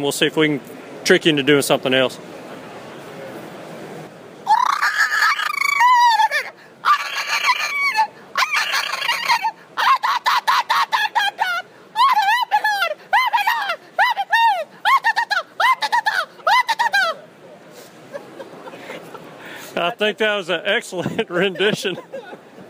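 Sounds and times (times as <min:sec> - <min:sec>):
speech: 0:00.0 - 0:02.4, 0:20.0 - 0:22.2
natural voice call imitating animal: 0:04.5 - 0:17.2
laughter: 0:04.5 - 0:19.9, 0:20.8 - 0:22.6.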